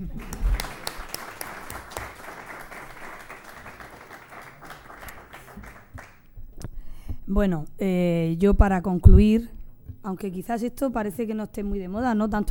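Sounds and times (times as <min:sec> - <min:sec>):
audience applause: 0:00.0 - 0:06.2
speech: 0:07.3 - 0:12.4.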